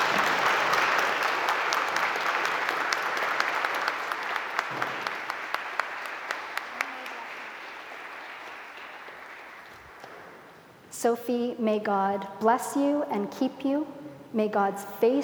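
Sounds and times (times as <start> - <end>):
audience applause: 0.0 - 10.9
speech: 11.0 - 15.2.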